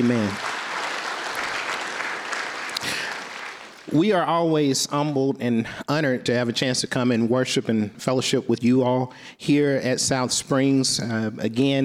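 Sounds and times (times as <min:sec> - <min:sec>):
speech: 0:00.0 - 0:00.5, 0:03.9 - 0:11.8
crowd round of applause: 0:00.0 - 0:03.9.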